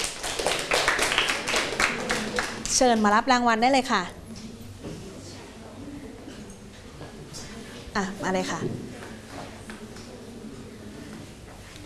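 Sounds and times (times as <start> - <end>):
classroom clapping for a student: 0.0 - 3.0
speech: 2.8 - 4.2, 8.0 - 8.9.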